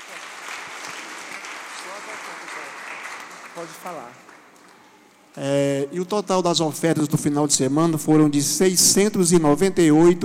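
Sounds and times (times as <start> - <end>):
audience applause: 0.0 - 4.7
speech: 3.6 - 4.3, 5.3 - 10.2.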